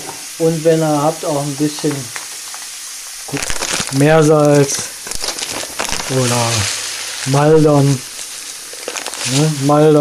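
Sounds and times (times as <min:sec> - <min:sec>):
hiss: 0:00.0 - 0:09.9
speech: 0:00.4 - 0:02.2, 0:03.3 - 0:04.9, 0:06.1 - 0:08.1, 0:09.3 - 0:09.9
pepper being ground in a pepper mill: 0:03.3 - 0:09.9.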